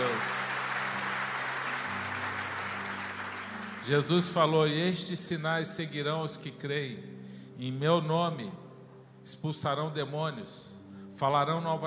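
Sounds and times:
audience applauding: 0:00.0 - 0:04.5
speech: 0:03.9 - 0:08.6, 0:09.2 - 0:11.8.

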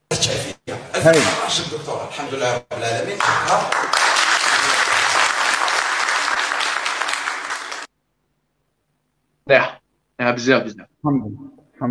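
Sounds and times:
speech: 0:00.2 - 0:03.9, 0:09.5 - 0:11.8
crowd clapping: 0:03.1 - 0:07.9.

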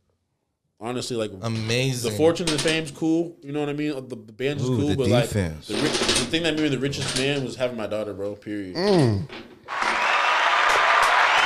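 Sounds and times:
speech: 0:00.8 - 0:09.5
applause: 0:09.7 - 0:11.4.

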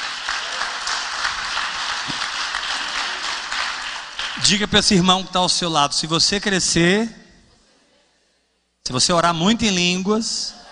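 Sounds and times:
audience applauding: 0:00.0 - 0:04.7
speech: 0:04.4 - 0:07.2, 0:08.9 - 0:10.6.

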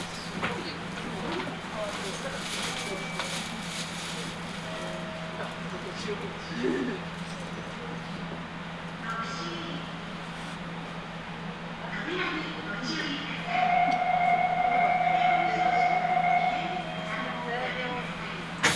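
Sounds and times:
faint voices: 0:00.0 - 0:10.0, 0:11.3 - 0:18.7
Nagoya Municipal Subway Sakura-dori Line train hum: 0:00.0 - 0:18.7
clear sustained tone: 0:13.5 - 0:18.0.

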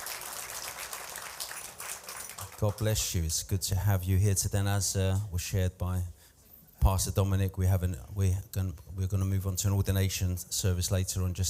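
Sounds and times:
audience applause: 0:00.0 - 0:02.9
speech: 0:02.6 - 0:06.2, 0:06.8 - 0:11.4.

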